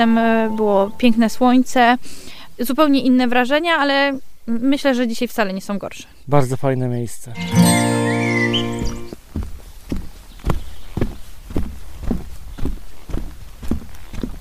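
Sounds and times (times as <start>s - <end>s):
speech: 0.0s - 7.7s
brief tonal sound: 7.4s - 9.2s
footsteps on an educational forest trail on a drizzly day: 8.5s - 14.3s.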